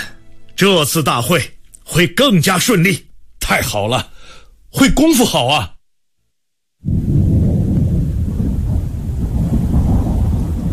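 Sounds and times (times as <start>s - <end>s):
speech: 0.6s - 4.1s, 4.7s - 5.8s
distant rolling thunder before a rainstorm: 6.8s - 10.7s.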